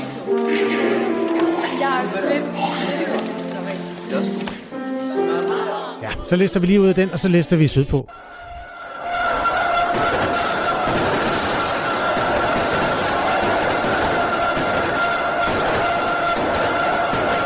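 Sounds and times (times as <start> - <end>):
laughter: 0.0 - 3.8, 5.0 - 7.2, 8.1 - 17.4
speech: 6.3 - 8.4
car horns: 8.1 - 17.4
roman candle fireworks: 9.2 - 17.4.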